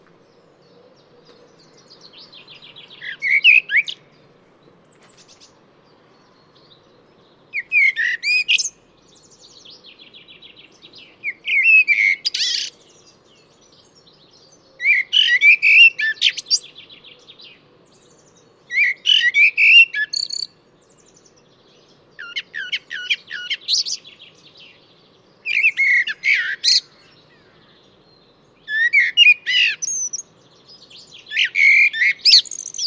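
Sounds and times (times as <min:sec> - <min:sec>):
bird whistles and chirps: 0:02.4 - 0:04.1, 0:07.6 - 0:09.6, 0:11.2 - 0:12.7, 0:14.8 - 0:16.7, 0:18.0 - 0:20.5, 0:25.4 - 0:27.1, 0:28.7 - 0:32.8.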